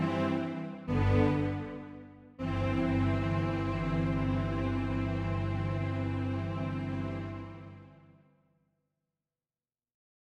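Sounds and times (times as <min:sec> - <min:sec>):
strings: 0:00.0 - 0:08.1.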